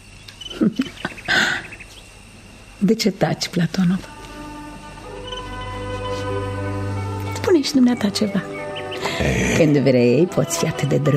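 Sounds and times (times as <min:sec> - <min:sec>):
nightingale singing: 0:00.0 - 0:02.3, 0:03.5 - 0:09.3
faint steady hiss: 0:00.0 - 0:11.1
speech: 0:02.8 - 0:04.1, 0:07.6 - 0:11.1.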